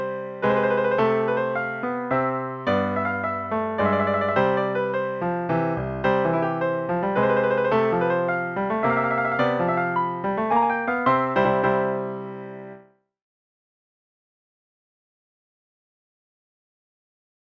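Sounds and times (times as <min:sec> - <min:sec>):
baroque dance piece: 0:00.0 - 0:12.8.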